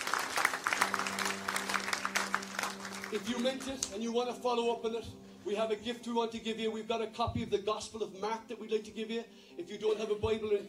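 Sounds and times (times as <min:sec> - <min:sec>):
audience applause: 0:00.0 - 0:03.9
speech: 0:03.1 - 0:10.6.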